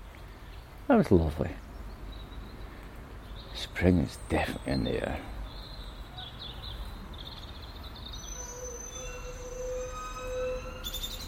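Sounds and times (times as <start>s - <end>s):
speech: 0.9s - 1.7s, 3.7s - 5.4s
train brakes squealing: 8.2s - 11.2s.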